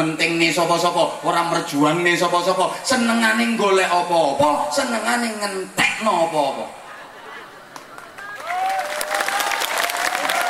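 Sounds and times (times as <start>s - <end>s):
speech: 0.0s - 6.8s
crowd applauding during a political speech: 7.7s - 10.4s.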